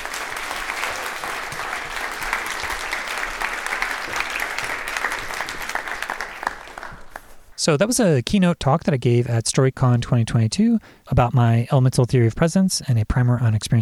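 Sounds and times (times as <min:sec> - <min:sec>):
audience applause: 0:00.0 - 0:07.5
speech: 0:07.6 - 0:13.7.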